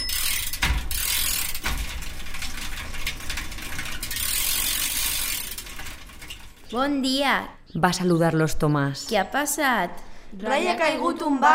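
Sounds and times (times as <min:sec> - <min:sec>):
bicycle with trailer riding past: 0:00.0 - 0:07.2
speech: 0:06.7 - 0:11.5.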